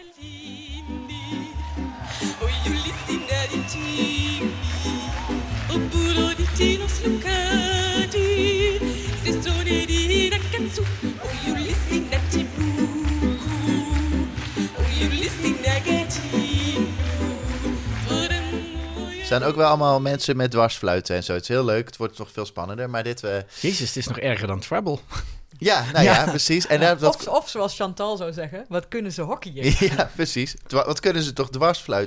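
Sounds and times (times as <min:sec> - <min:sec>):
upbeat Eurovision pop song sung in a made-up gibberish language: 0:00.0 - 0:20.2
laughter: 0:01.5 - 0:06.8, 0:11.1 - 0:19.2, 0:25.8 - 0:27.3, 0:29.6 - 0:30.2
speech: 0:19.3 - 0:32.0.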